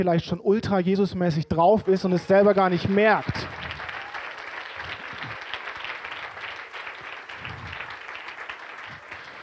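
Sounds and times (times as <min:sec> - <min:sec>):
speech: 0:00.0 - 0:03.7
audience applause: 0:02.2 - 0:09.4.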